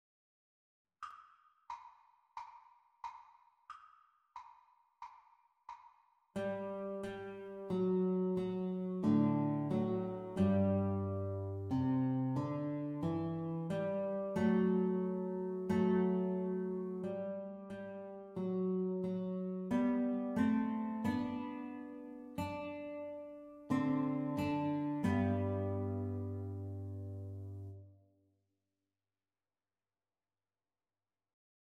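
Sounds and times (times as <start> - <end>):
guitar duet playalong: 6.4 - 27.8.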